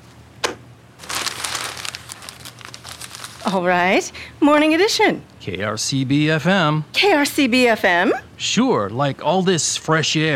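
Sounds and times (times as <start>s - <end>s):
newspaper being handled, paper crinkling: 1.0s - 4.0s
speech: 3.4s - 10.3s.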